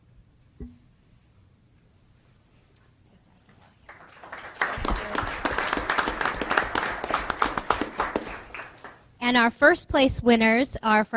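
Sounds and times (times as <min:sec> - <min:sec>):
audience applause: 0:03.9 - 0:09.0
speech: 0:09.3 - 0:11.1.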